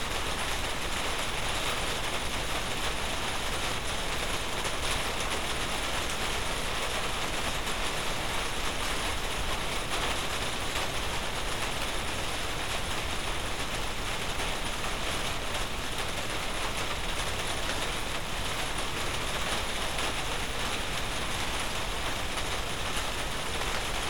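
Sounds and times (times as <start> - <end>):
rain: 0.0 - 24.0.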